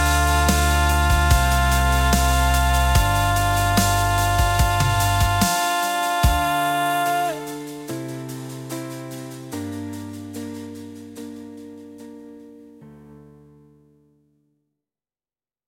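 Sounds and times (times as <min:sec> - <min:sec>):
person singing birthday name songs: 0:00.0 - 0:07.9.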